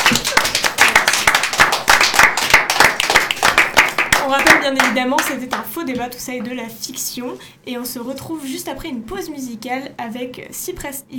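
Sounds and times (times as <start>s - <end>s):
audience applause: 0.0s - 4.9s
speech: 4.3s - 11.1s.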